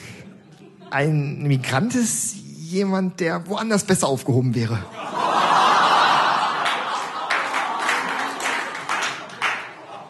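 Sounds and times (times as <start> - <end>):
laughter: 0.0 - 1.4, 4.9 - 10.0
speech: 0.9 - 5.1
clapping: 6.6 - 9.9.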